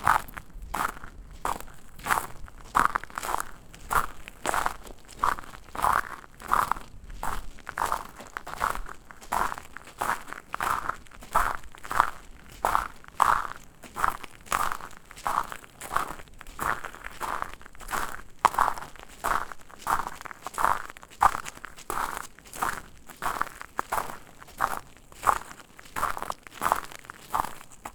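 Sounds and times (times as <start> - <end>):
footsteps on an outdoor path: 0.0 - 27.9.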